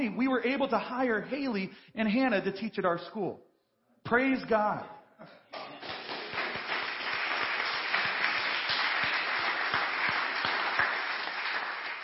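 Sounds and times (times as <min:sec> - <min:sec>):
speech: 0:00.0 - 0:05.8
crowd clapping: 0:05.6 - 0:12.0.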